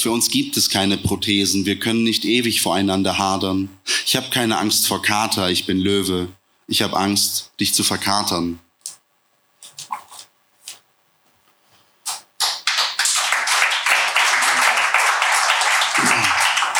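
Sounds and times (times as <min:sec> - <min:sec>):
speech: 0:00.0 - 0:08.6
audience applause: 0:12.4 - 0:16.7.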